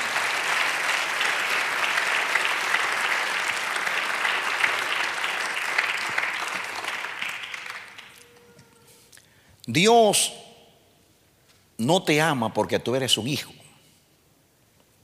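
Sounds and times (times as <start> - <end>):
audience applause: 0.0 - 8.4
speech: 9.7 - 10.4, 11.8 - 13.6.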